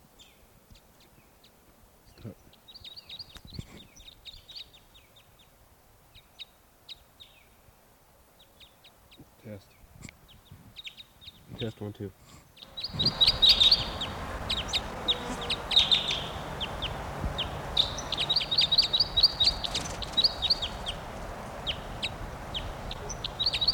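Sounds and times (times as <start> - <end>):
low steady hiss: 0.0 - 23.7
male bird singing: 0.1 - 5.5, 8.4 - 11.8, 12.5 - 23.7
speech: 2.2 - 2.4, 11.6 - 12.4.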